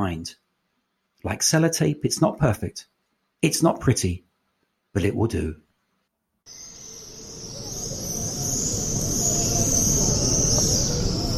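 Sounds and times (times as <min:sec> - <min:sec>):
speech: 0:00.0 - 0:00.4, 0:01.2 - 0:04.2, 0:05.0 - 0:05.6
swifts screaming while returning to nest near the Western Wall: 0:06.5 - 0:11.3.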